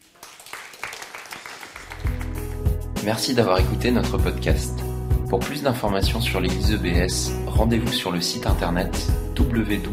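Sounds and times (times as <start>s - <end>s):
audience applause: 0.0s - 2.4s
speech: 3.0s - 9.9s.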